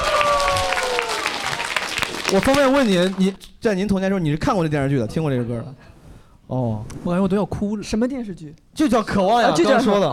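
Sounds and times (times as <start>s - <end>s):
applause: 0.0s - 3.4s
speech: 2.3s - 5.9s, 6.5s - 10.1s.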